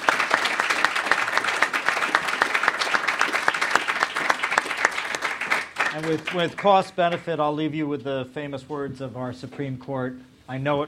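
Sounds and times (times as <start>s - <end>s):
audience applause: 0.0s - 6.8s
speech: 6.0s - 10.8s.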